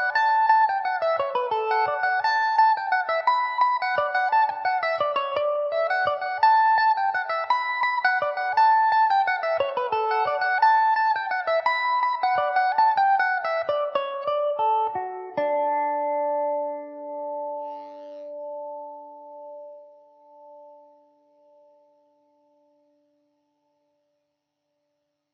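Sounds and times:
electric mandolin playing an Irish tune in D major: 0.0s - 21.7s.

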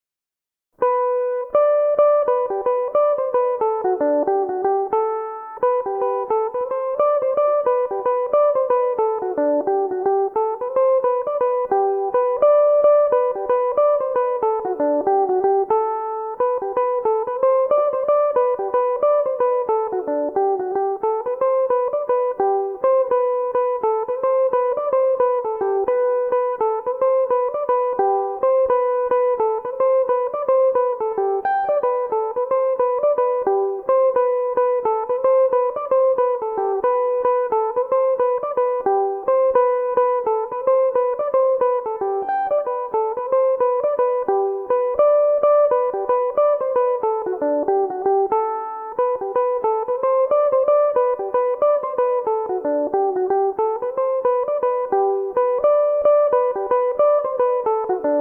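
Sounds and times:
mandolin playing a jig in G major: 0.8s - 58.1s.

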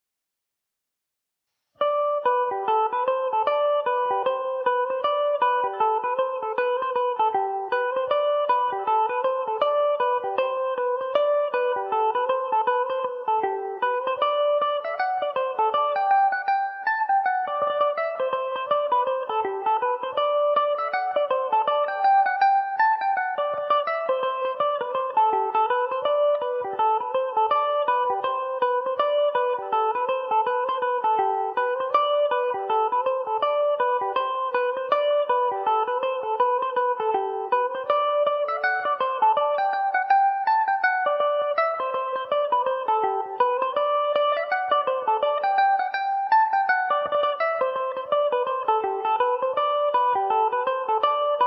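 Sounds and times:
Irish mandolin in G major: 1.8s - 51.4s.

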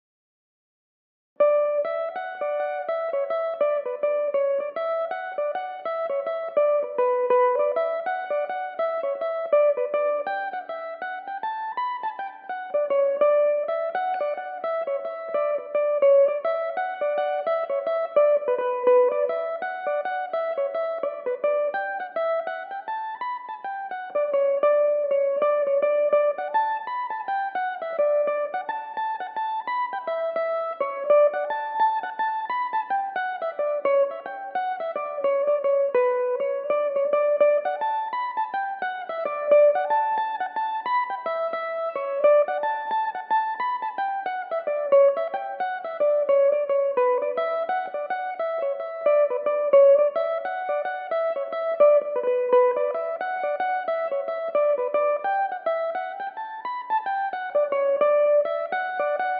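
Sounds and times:
Irish mandolin playing in D major and B minor: 1.4s - 59.3s.

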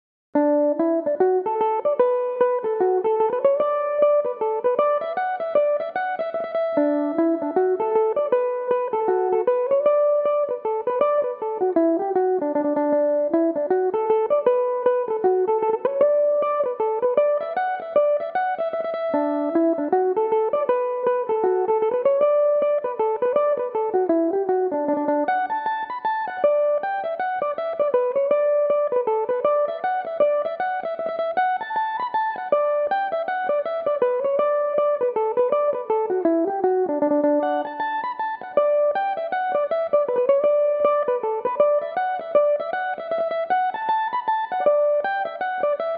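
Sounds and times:
Irish mandolin tune in D major: 0.4s - 45.9s.

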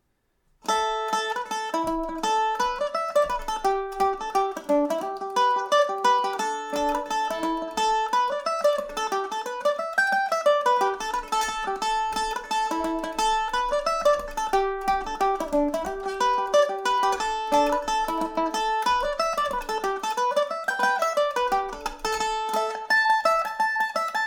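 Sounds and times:
Irish mandolin in A Dorian: 0.6s - 24.2s.

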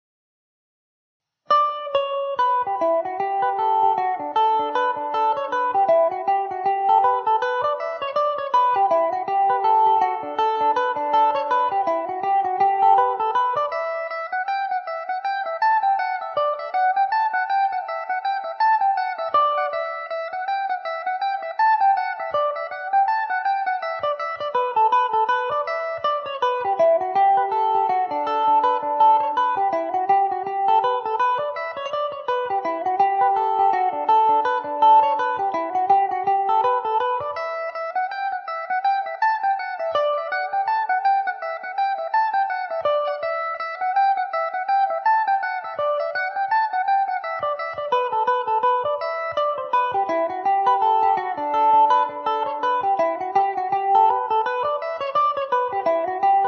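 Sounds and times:
Irish mandolin in E dorian: 1.5s - 56.4s.

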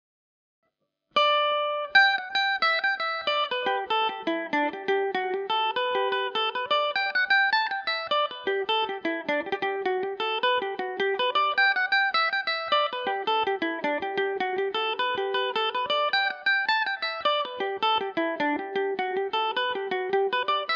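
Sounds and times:
mandolin tune in G major: 1.2s - 20.7s.

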